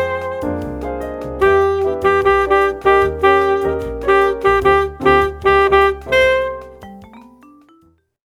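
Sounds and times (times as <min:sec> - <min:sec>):
saxophone single note: 0:01.4 - 0:06.8.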